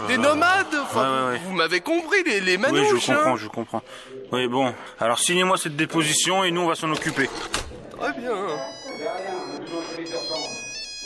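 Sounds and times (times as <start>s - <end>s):
speech: 0.0s - 9.3s
mobile phone ringtone chiming during a police statement: 8.0s - 11.0s.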